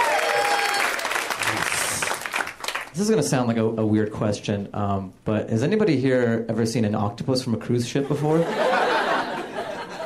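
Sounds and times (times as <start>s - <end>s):
crowd applauding: 0.0s - 3.0s
speech: 3.0s - 8.7s
laughter: 8.0s - 10.0s.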